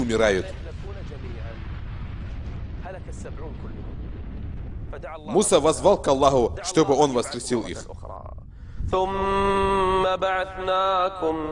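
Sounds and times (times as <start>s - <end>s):
lightning strike thunder rumbling: 0.0s - 10.6s
speech: 0.1s - 0.6s, 3.1s - 4.0s, 5.0s - 11.4s.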